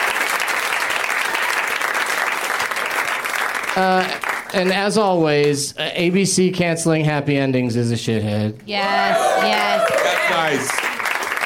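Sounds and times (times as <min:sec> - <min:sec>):
audience applause: 0:00.0 - 0:04.9, 0:09.0 - 0:11.4
speech: 0:03.8 - 0:10.8.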